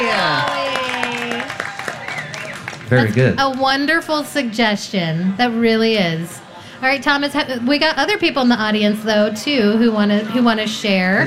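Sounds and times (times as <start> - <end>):
audience at a fair cheering with gliding shouts: 0.0 - 3.7
scattered claps: 0.4 - 3.8
speech: 2.9 - 11.2.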